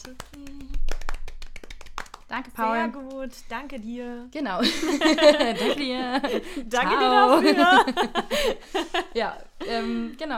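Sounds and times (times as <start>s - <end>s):
speech: 0.0s - 0.4s, 2.3s - 10.3s
small group applause: 0.0s - 3.1s
laughter: 4.6s - 10.0s.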